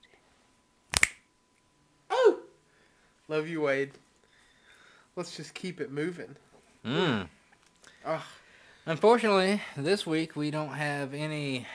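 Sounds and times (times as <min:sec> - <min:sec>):
sharp finger snaps: 0:00.9 - 0:01.2
speech: 0:03.3 - 0:04.0, 0:05.2 - 0:07.4, 0:08.0 - 0:11.7.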